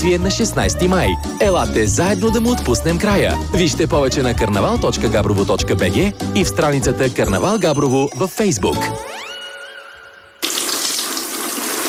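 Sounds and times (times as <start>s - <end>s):
speech: 0.0s - 9.2s
water pouring in a bathroom: 9.8s - 11.8s.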